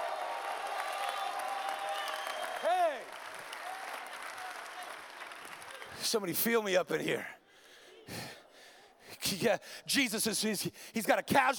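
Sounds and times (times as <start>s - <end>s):
audience clapping: 0.0s - 6.2s
speech: 6.0s - 7.4s, 9.4s - 11.5s.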